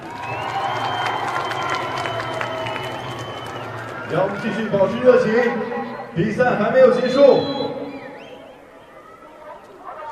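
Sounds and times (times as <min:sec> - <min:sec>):
stadium crowd applauding: 0:00.0 - 0:05.6
stadium crowd cheering: 0:00.0 - 0:10.1
speech: 0:04.1 - 0:07.7.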